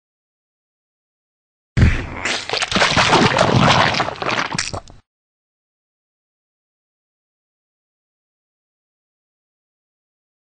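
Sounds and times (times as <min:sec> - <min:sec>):
splat: 0:01.8 - 0:05.0.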